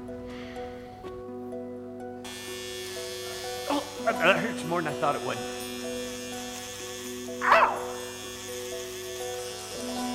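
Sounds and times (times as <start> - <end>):
electric shaver shaving hair off a head: 2.2 - 10.1
speech: 4.1 - 5.6.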